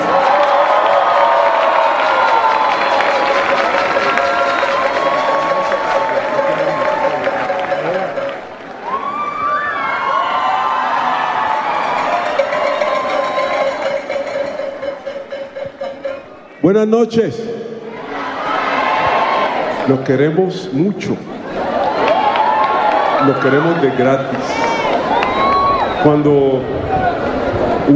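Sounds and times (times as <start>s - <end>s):
shouts: 0.0s - 8.2s, 8.8s - 13.9s, 21.8s - 26.2s
large audience applause: 0.0s - 15.4s, 21.5s - 27.9s
large audience cheering: 0.0s - 16.3s, 17.9s - 20.4s, 21.4s - 27.9s
speech: 16.7s - 17.5s, 19.9s - 21.4s, 23.2s - 24.6s, 26.0s - 27.9s.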